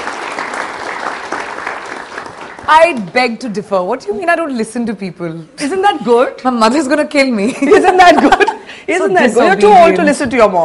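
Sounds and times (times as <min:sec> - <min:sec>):
audience applause: 0:00.0 - 0:02.7
speech: 0:02.7 - 0:10.6.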